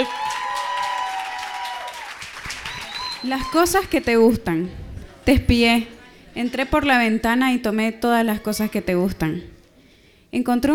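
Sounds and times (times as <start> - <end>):
audience applause: 0.0 - 3.6
speech: 3.2 - 9.6, 10.3 - 10.7.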